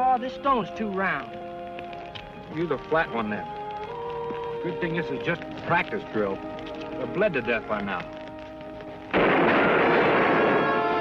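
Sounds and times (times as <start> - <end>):
speech: 0.2 - 1.5, 2.5 - 3.6, 4.6 - 8.2
gunshots from two guns: 9.1 - 10.9.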